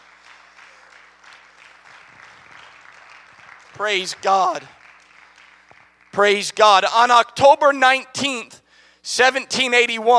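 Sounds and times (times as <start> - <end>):
audience clapping: 0.0 - 6.9
speech: 3.8 - 4.8, 6.2 - 10.1.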